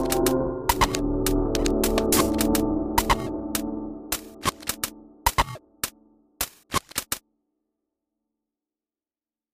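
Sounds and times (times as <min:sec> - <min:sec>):
glitch sounds: 0:00.0 - 0:05.9.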